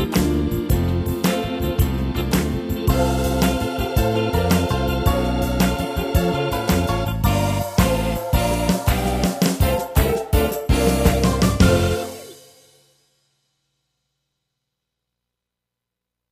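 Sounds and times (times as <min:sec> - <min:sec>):
gospel swing music: 0:00.0 - 0:12.4.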